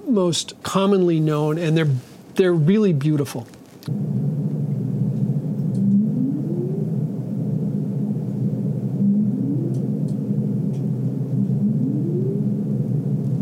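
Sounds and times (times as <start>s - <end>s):
speech: 0.1s - 4.0s
humpback whale song: 4.5s - 13.4s.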